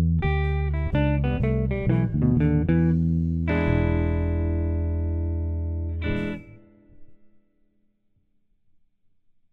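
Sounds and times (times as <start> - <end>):
drums playing a Chicago blues shuffle: 0.0 - 5.1, 6.0 - 6.4.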